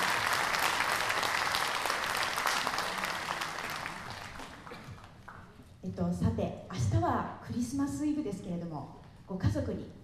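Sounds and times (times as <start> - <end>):
concert audience applause: 0.0 - 5.5
speech: 6.0 - 10.0.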